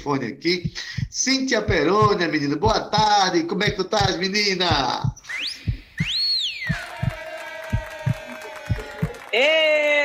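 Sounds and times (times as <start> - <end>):
speech: 0.0 - 5.4, 9.4 - 9.9
heartbeat sound effect: 0.0 - 9.2.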